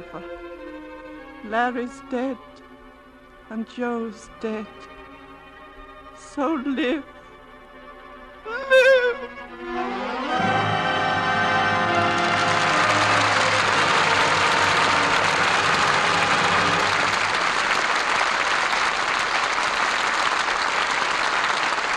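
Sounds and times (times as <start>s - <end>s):
speech: 0.0s - 0.4s, 1.4s - 2.6s, 3.5s - 4.9s, 6.2s - 7.2s
studio audience applauding: 9.7s - 21.9s.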